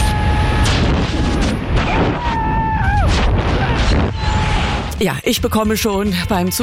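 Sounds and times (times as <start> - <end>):
rushing wind during a skydive jump from an airplane: 0.0 - 4.9
speech: 5.0 - 6.6.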